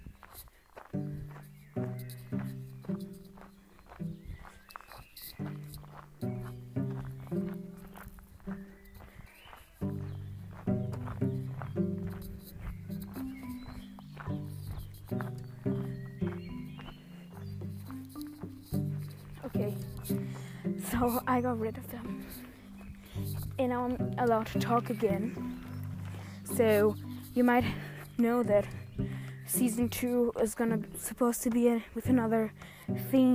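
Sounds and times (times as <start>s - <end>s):
footsteps walking outdoors: 0.0s - 33.3s
speech: 21.0s - 22.0s, 23.6s - 25.5s, 26.5s - 28.8s, 29.6s - 33.3s.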